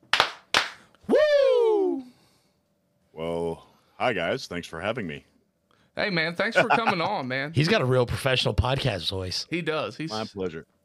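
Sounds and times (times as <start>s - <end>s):
hand claps: 0.0s - 1.0s
long high whooping yell: 1.1s - 2.1s
speech: 4.0s - 5.3s, 6.0s - 10.7s.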